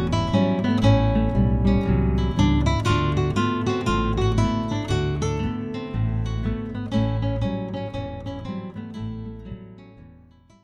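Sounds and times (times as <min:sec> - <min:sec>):
ragtime blues in A: 0:00.0 - 0:08.4.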